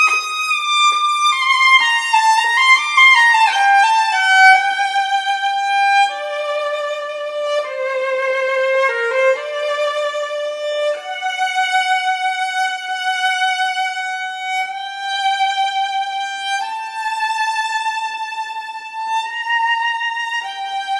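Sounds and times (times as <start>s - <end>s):
solo violin: 0.0s - 20.9s.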